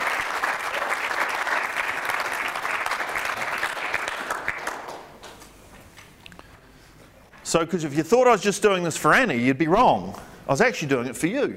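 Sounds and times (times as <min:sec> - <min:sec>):
audience clapping: 0:00.0 - 0:05.6
speech: 0:07.5 - 0:11.5.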